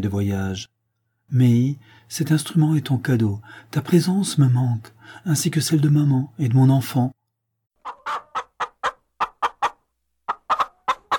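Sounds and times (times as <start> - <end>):
speech: 0.0 - 7.2
hen clucking in a classroom: 7.8 - 11.1.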